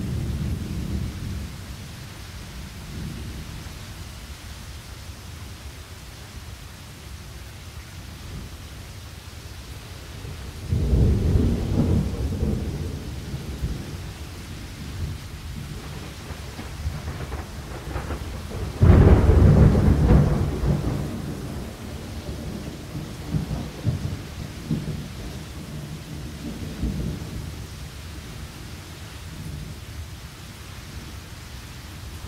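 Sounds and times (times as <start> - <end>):
thunderstorm: 0.0 - 3.8, 10.2 - 28.7.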